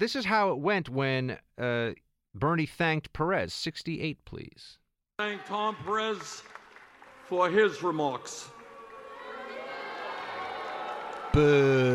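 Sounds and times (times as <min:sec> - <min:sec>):
speech: 0:00.0 - 0:06.6, 0:07.3 - 0:08.6, 0:11.4 - 0:11.9
crowd booing: 0:05.2 - 0:11.9.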